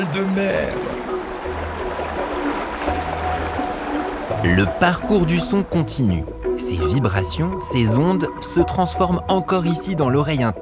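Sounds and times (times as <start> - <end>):
water sloshing and churning in a flood with a heaving swell: 0.0 - 6.6
speech: 0.1 - 1.1, 4.4 - 10.6.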